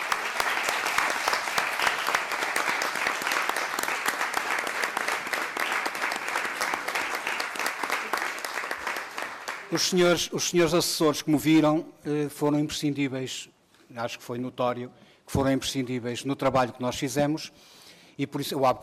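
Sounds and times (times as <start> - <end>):
audience applause: 0.0 - 10.1
speech: 9.7 - 18.8.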